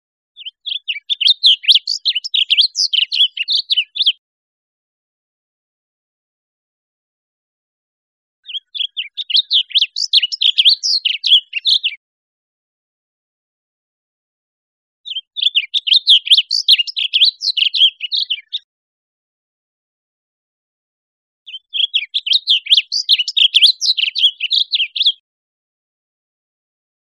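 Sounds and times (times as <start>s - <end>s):
blue grosbeak song: 0.4s - 4.2s, 8.4s - 12.0s, 15.1s - 18.7s, 21.5s - 25.2s.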